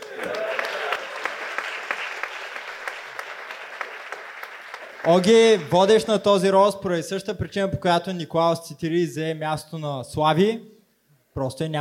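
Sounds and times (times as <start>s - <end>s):
audience applause: 0.0s - 6.1s
speech: 5.0s - 10.8s, 11.4s - 11.7s.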